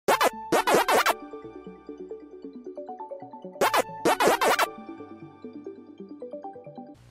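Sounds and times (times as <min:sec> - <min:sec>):
Pacman waka waka sound on Huawei: 0:00.1 - 0:01.2, 0:03.6 - 0:04.7.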